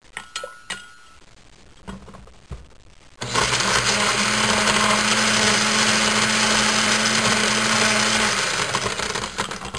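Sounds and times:
blender crushing ice cubes: 0:03.2 - 0:09.7.

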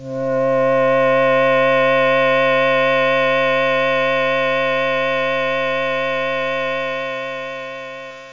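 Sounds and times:
synth swell: 0:00.0 - 0:08.3.

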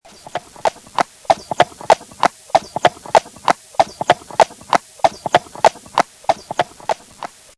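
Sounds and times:
horse: 0:00.1 - 0:07.4.

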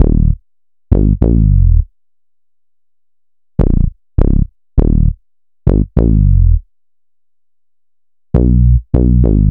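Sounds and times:
bass: 0:00.0 - 0:02.0, 0:03.6 - 0:06.7, 0:08.3 - 0:09.4.

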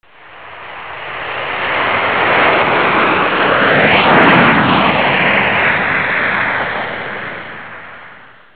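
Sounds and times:
jet: 0:00.0 - 0:08.5.

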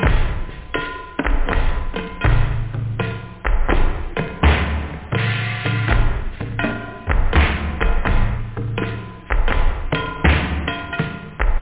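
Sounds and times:
bell: 0:00.0 - 0:04.4, 0:05.5 - 0:11.5.

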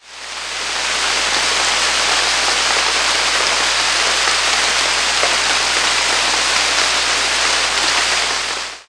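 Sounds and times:
rain: 0:00.0 - 0:08.8.

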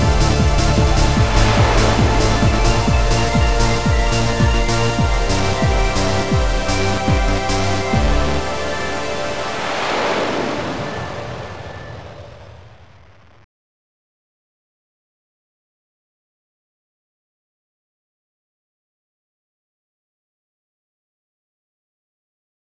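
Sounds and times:
waves: 0:00.0 - 0:12.7.

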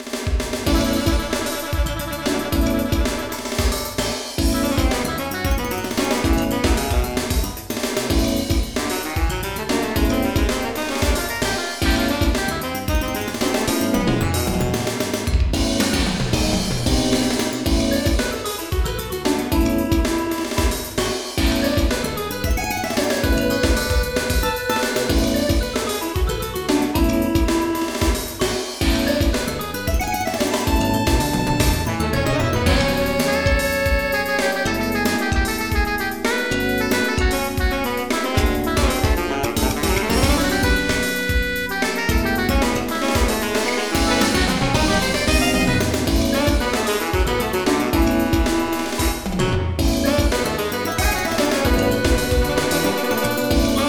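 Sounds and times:
funk music: 0:00.0 - 0:53.8.

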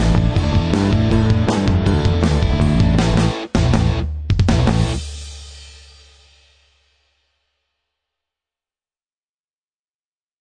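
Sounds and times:
medium bass: 0:00.0 - 0:06.2.

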